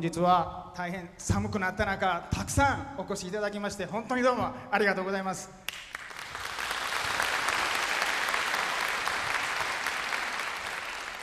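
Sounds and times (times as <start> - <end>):
speech: 0.0 - 5.9
audience applause: 5.7 - 11.2.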